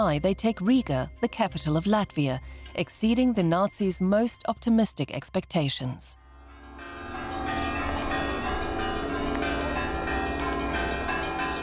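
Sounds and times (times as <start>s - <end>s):
speech: 0.0s - 6.2s
church bells ringing: 6.2s - 11.6s.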